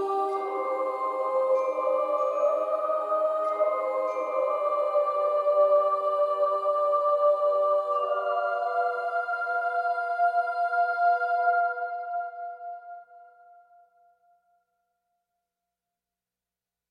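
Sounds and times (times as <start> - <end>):
dramatic fantasy music: 0.0 - 13.3.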